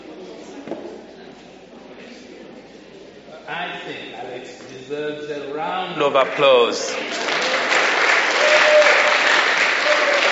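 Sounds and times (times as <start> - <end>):
speech: 3.5 - 7.4
audience applause: 6.2 - 10.3.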